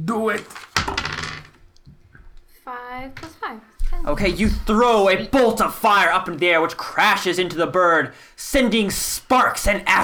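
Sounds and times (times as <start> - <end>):
speech: 0.1 - 0.6, 2.7 - 10.0
die rolling on a hard surface: 0.4 - 1.6.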